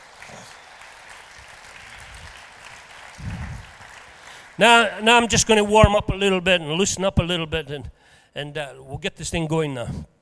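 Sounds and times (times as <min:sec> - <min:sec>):
audience applause: 0:00.0 - 0:05.0
speech: 0:04.6 - 0:10.1.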